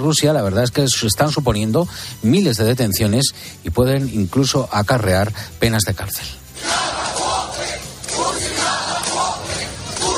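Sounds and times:
speech: 0.0s - 6.7s
crowd of protesters shouting slogans in unison: 6.6s - 10.1s.

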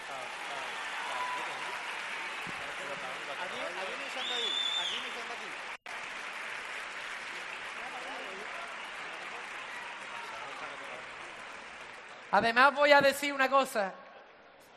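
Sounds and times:
applause: 0.0s - 13.8s
speech: 12.3s - 14.0s.

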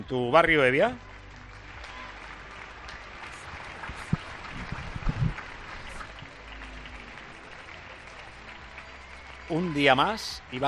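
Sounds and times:
speech: 0.0s - 1.1s, 9.5s - 10.6s
neighbourhood applause from balconies in Spain: 0.0s - 10.6s.

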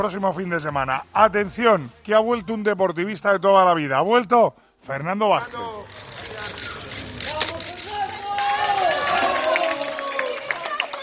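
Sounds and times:
speech: 0.0s - 6.1s
crowd shouting and chanting support: 7.5s - 11.0s.

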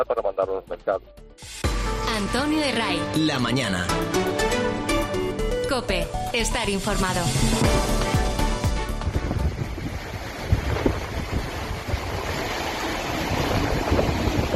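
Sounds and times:
speech: 0.0s - 5.0s, 5.7s - 8.1s
raging flooded Ebro river rushing through Tudela: 9.0s - 14.5s.

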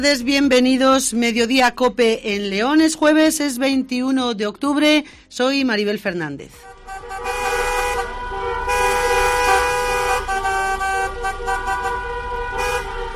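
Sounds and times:
speech: 0.0s - 7.3s
car horns honking during vehicle protest march: 6.6s - 13.1s.

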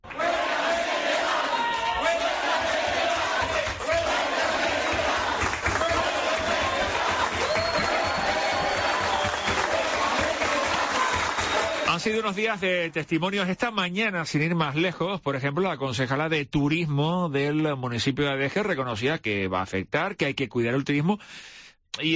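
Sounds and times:
euphoric assembly crowd cheering and applauding: 0.0s - 12.5s
speech: 12.0s - 22.1s.

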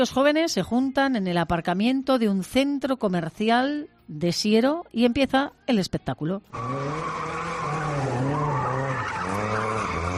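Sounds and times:
speech: 0.0s - 7.5s
car tires squealing during illegal street racing in a shopping-centre car park in Siero: 6.5s - 10.1s.

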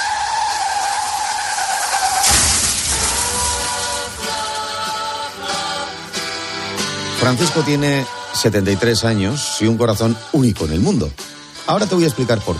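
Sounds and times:
rattling, scraping debris and clanks: 0.0s - 5.2s
car tyres screeching in a skid: 0.0s - 5.6s
head-on car collision: 0.0s - 5.6s
speech: 7.2s - 12.5s.

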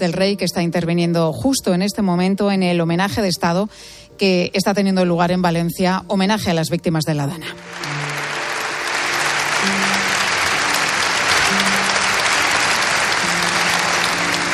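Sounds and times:
speech: 0.0s - 8.2s
applause at state memorial ceremony: 7.5s - 14.5s.

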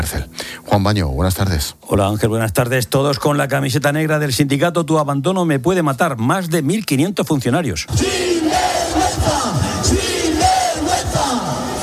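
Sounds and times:
speech: 0.0s - 8.6s
large protesting crowd chanting slogans in street: 7.9s - 11.8s.

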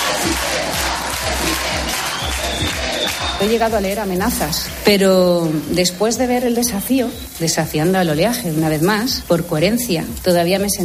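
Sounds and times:
crowd applauding and cheering: 0.0s - 7.4s
speech: 3.4s - 10.8s.

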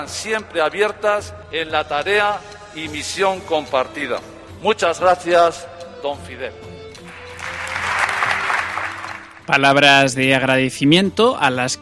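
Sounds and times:
speech: 0.0s - 6.7s, 9.5s - 11.7s
church congregation applause, ovation for a farewell speech: 7.1s - 9.6s.

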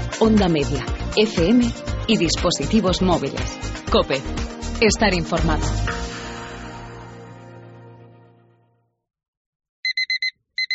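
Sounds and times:
speech: 0.2s - 6.1s
car door-open warning chime: 9.8s - 10.7s.

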